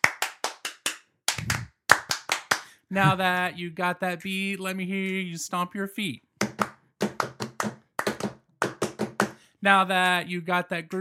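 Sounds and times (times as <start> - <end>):
audience clapping hands: 0.0 - 2.7, 6.4 - 9.3
speech: 2.9 - 6.3, 9.6 - 11.0.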